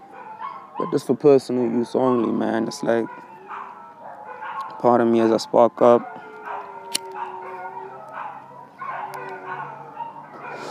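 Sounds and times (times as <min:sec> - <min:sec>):
dogs barking and yipping: 0:00.0 - 0:10.6
speech: 0:00.8 - 0:03.3, 0:04.8 - 0:06.2.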